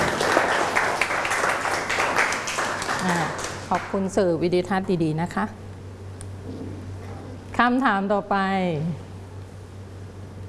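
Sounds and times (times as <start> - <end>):
audience applause: 0.0 - 3.6
speech: 3.7 - 5.6, 7.6 - 9.1.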